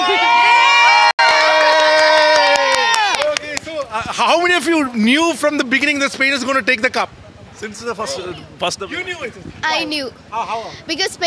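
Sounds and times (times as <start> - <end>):
Spanish fans cheering outside stadium: 0.0 - 3.5
speech: 4.2 - 11.2.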